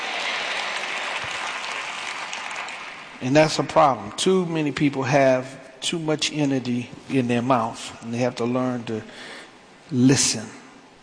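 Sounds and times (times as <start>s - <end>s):
audience applause: 0.0s - 3.2s
speech: 3.2s - 9.3s, 9.9s - 10.6s.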